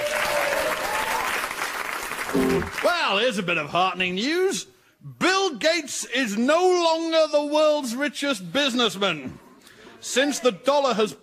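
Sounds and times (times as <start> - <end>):
audience applause welcoming a performer onto the stage: 0.0 - 3.0
speech: 2.3 - 9.4, 10.0 - 11.2.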